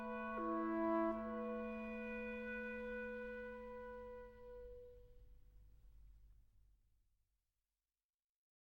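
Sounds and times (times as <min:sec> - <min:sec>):
flute, oboe and clarinet playing an andantino: 0:00.0 - 0:05.0.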